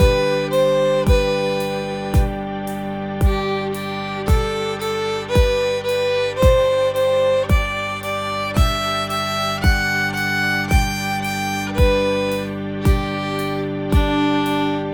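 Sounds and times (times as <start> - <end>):
practice loop scale beat: 0.0 - 14.9.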